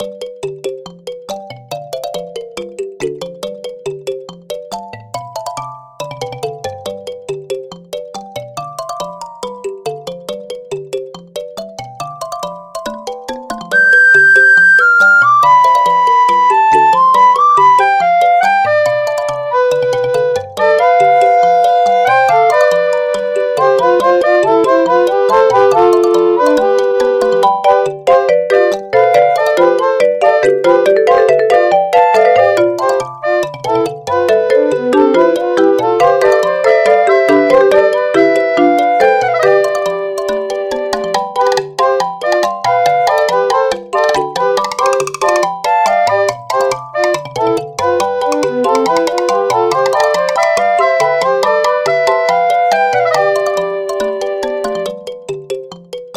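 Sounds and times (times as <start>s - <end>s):
flute: 13.8s - 55.0s.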